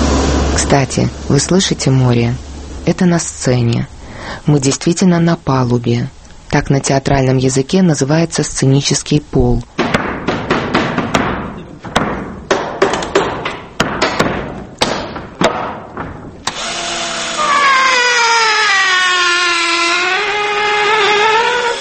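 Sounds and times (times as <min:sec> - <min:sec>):
speech: 0:00.7 - 0:09.8
stage set construction hammer knocks: 0:09.8 - 0:16.4
power drill whining: 0:16.4 - 0:21.8.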